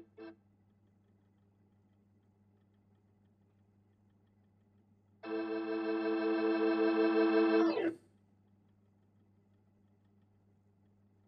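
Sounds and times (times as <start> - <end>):
Hammond organ: 5.2 - 7.9.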